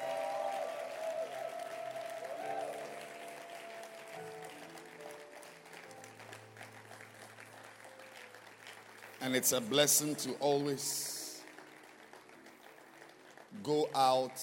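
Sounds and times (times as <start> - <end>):
audience clapping hands: 0.0 - 14.4
speech: 9.2 - 11.1, 13.6 - 14.4.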